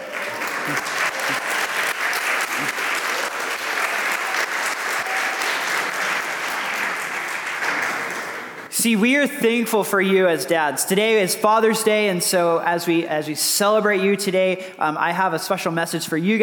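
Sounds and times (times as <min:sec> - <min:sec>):
crowd applauding: 0:00.0 - 0:08.7
speech: 0:00.7 - 0:01.4, 0:08.8 - 0:16.4.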